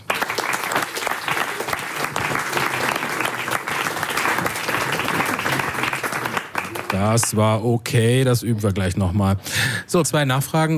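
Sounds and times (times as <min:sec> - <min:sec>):
audience applause: 0:00.0 - 0:07.4
speech: 0:07.0 - 0:10.7.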